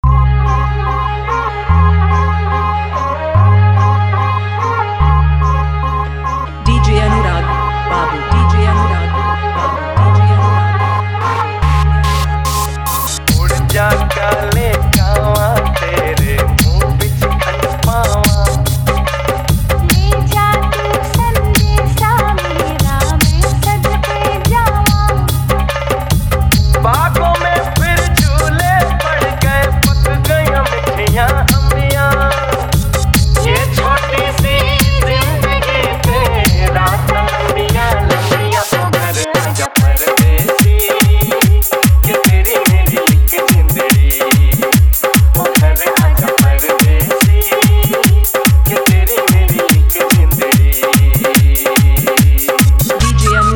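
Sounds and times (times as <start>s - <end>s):
dholak dance mix: 0.2s - 53.4s.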